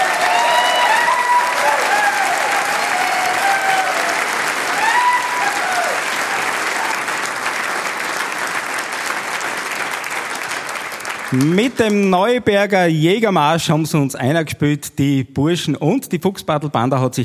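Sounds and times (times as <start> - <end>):
audience applause in a hall: 0.0 - 12.3
speech: 11.3 - 17.2.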